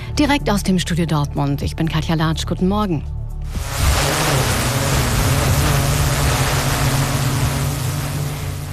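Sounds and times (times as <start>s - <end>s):
speech: 0.1s - 3.7s
autonomous fire brigade drone flying: 3.5s - 8.7s.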